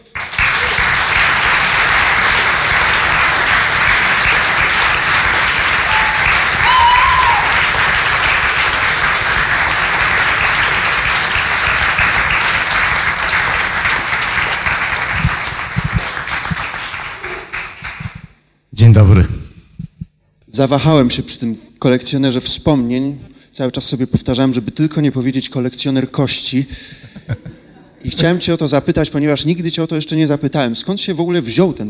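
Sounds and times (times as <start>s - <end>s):
audience applause for the guest: 0.0s - 18.2s
faint cheers: 5.6s - 7.8s
speech: 20.6s - 31.8s
laughter: 27.0s - 28.6s.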